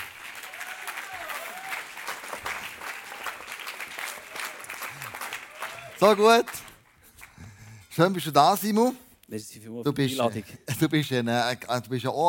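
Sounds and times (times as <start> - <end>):
audience applause: 0.0 - 7.4
speech: 6.0 - 6.7, 8.0 - 12.2.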